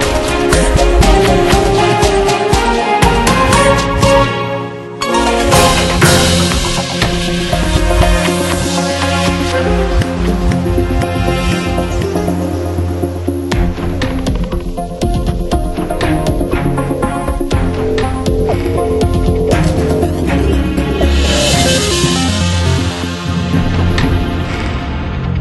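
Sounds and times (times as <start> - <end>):
evil thunderstorm music: 0.0 - 25.3.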